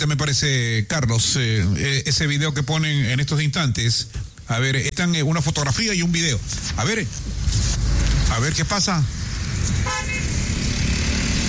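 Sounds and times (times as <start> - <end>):
speech: 0.0 - 10.4
heavy road traffic: 6.2 - 11.4
car horns tooting in heavy traffic: 9.7 - 10.6.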